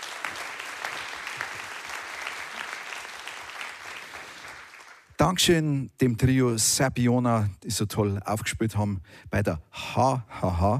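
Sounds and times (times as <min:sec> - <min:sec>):
audience applause: 0:00.0 - 0:05.2
speech: 0:05.2 - 0:10.7.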